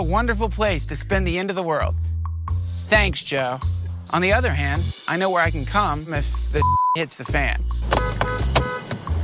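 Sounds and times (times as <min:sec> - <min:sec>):
speech: 0:00.0 - 0:02.2, 0:02.9 - 0:08.6
car horn honking at a gate: 0:07.8 - 0:09.1.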